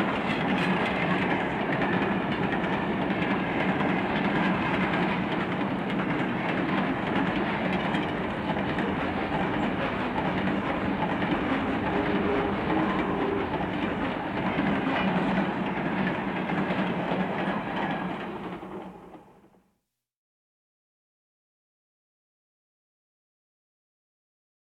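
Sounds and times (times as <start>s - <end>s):
diesel locomotive passing at a station: 0.0s - 19.6s.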